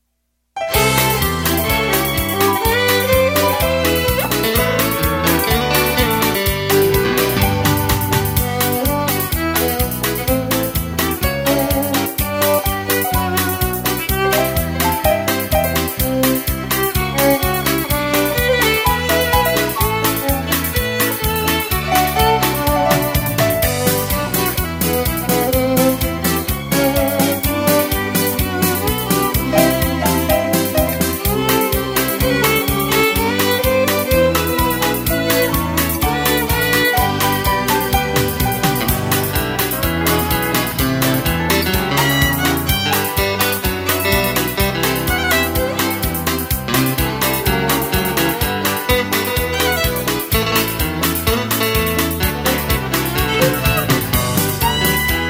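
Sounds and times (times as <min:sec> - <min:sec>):
music: 0:00.6 - 0:55.2.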